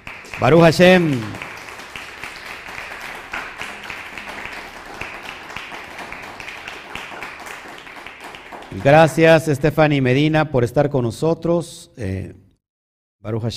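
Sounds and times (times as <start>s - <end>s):
audience applause: 0.0s - 9.5s
speech: 0.4s - 1.4s, 8.8s - 12.4s, 13.2s - 13.5s.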